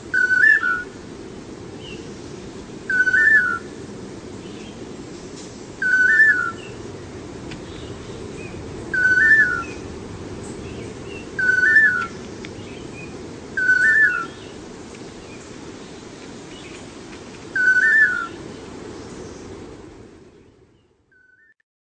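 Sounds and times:
unidentified pair of birds calling: 0.1s - 1.0s, 2.9s - 3.7s, 4.4s - 19.6s.

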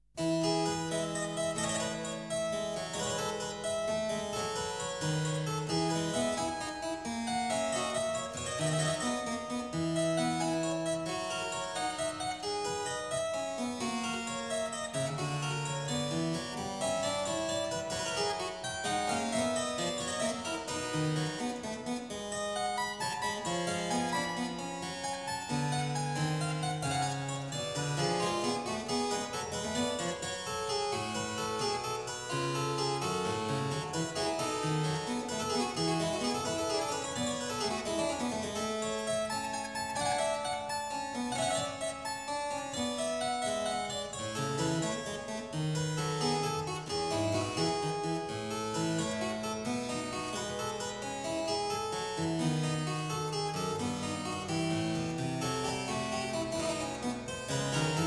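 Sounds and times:
clavier prelude in E major: 0.2s - 58.0s.

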